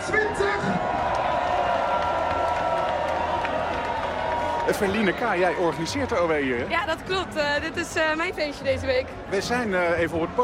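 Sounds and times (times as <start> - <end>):
crowd of students cheering and applauding at an introduction week opening party in Delft: 0.0 - 6.6
speech: 4.7 - 10.4.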